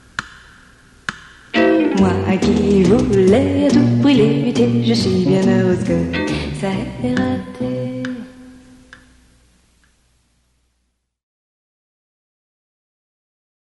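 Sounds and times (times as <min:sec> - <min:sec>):
sexy French song: 0:01.5 - 0:08.6.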